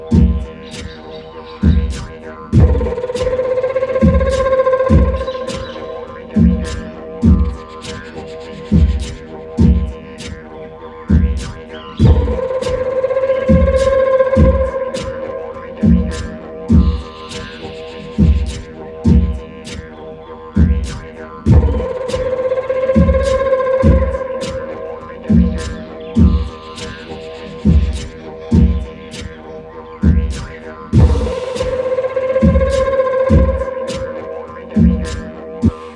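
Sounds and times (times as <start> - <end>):
live didgeridoo playing: 0.0 - 35.9
morning ambience: 2.6 - 7.5, 12.0 - 17.6, 21.5 - 26.8, 31.0 - 35.2.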